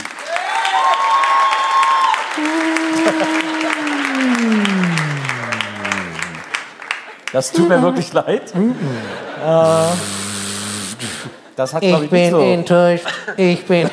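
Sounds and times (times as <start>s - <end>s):
quiz show audience clapping: 0.0s - 8.2s
laughter: 2.4s - 6.5s, 7.6s - 10.0s, 12.8s - 13.9s
speech: 7.4s - 10.2s, 11.6s - 13.9s.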